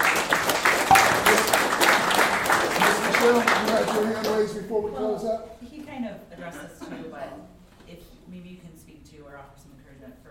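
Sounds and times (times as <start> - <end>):
crowd clapping: 0.0 - 4.6
speech: 3.3 - 10.3.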